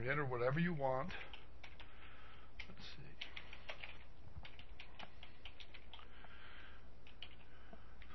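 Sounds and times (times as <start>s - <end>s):
speech: 0.0s - 1.4s, 2.7s - 3.3s
computer keyboard typing a book review title: 1.0s - 2.0s, 2.6s - 6.3s, 7.0s - 8.1s.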